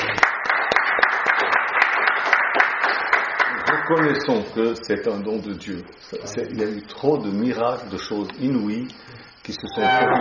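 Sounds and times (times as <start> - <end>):
audience applauding: 0.0 - 4.5
speech: 3.9 - 10.1.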